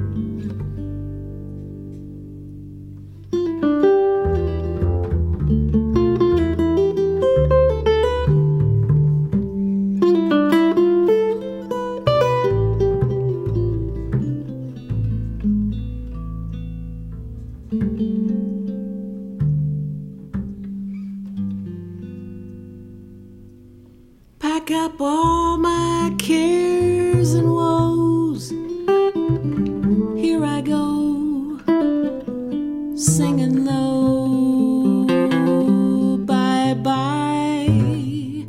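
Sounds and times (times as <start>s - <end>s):
18-inch Engelmann Spruce and Big Leaf Maple archtop guitar: 0.0s - 38.4s.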